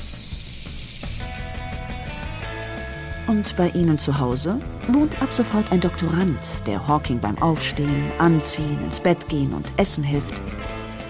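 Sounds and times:
snake hissing: 0.0s - 3.3s
speech: 3.3s - 10.7s.

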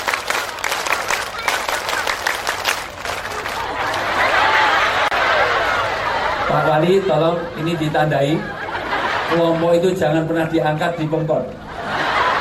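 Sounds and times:
group performing a scout-style rhythmic clap: 0.0s - 5.8s
crowd noise: 0.0s - 12.4s
laughter: 1.2s - 12.4s
speech: 6.8s - 8.6s, 9.3s - 11.6s.

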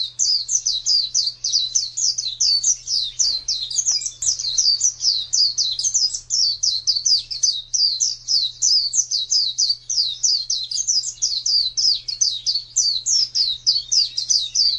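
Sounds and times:
white-eye song: 0.0s - 14.7s.

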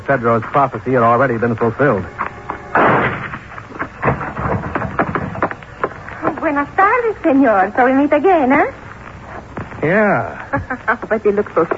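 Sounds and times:
speech: 0.1s - 2.2s, 6.6s - 8.8s, 9.8s - 11.7s
gunshots inside a low barn-like building: 2.7s - 5.5s.

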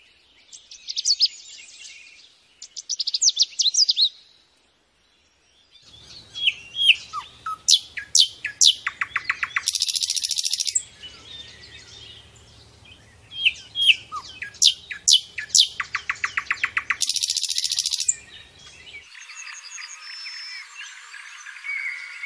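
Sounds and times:
lovebird twittering: 6.0s - 12.1s, 13.3s - 22.2s.

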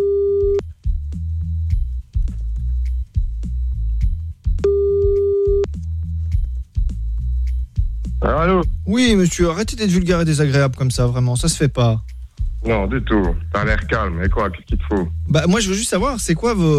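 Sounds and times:
telephone ringback tones: 0.0s - 0.6s, 4.6s - 5.6s
low constant rhythmic bed: 0.0s - 16.7s
speech: 8.3s - 16.7s.

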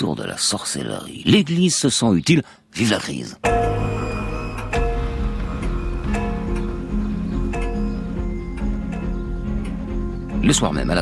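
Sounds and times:
speech: 0.1s - 3.6s, 10.5s - 11.0s
large living-room clock ticking: 3.5s - 11.0s.

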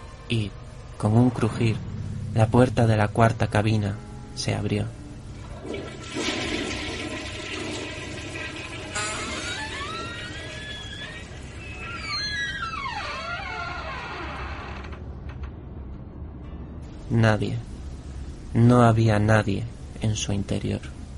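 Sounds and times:
speech: 0.3s - 5.0s, 17.1s - 17.7s, 18.5s - 21.0s
toilet flushing: 5.4s - 11.6s.

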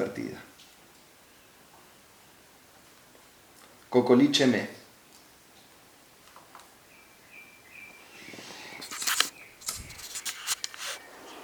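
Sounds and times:
speech: 3.9s - 4.8s
small bird chirping: 6.8s - 11.4s.

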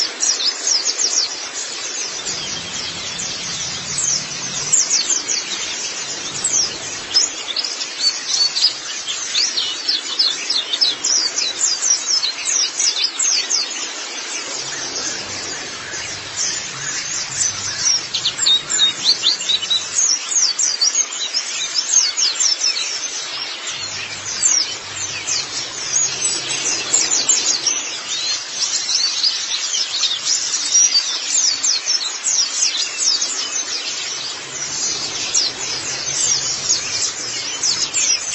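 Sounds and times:
white-eye twittering song: 0.2s - 38.3s
faint background hiss: 1.6s - 9.8s, 13.7s - 20.4s, 23.2s - 31.9s, 32.9s - 38.3s
faint low hum: 1.9s - 9.2s, 14.3s - 20.2s, 23.6s - 29.4s, 34.0s - 38.3s.

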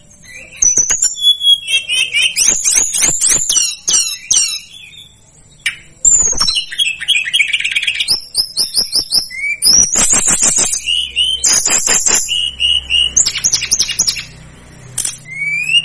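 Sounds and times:
Sunda whistling thrush singing: 0.0s - 14.4s, 15.2s - 15.8s.

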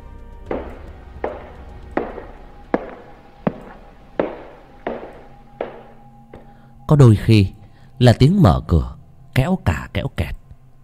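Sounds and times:
footsteps pacing on wooden floor: 0.5s - 6.5s
speech: 6.9s - 10.4s.

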